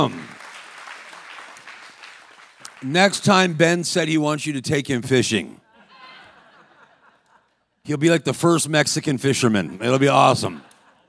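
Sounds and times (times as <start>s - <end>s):
speech: 0.0s - 0.2s, 2.8s - 5.6s, 7.9s - 10.7s
audience applause: 0.0s - 2.9s
laughter: 5.6s - 7.8s, 9.4s - 11.0s.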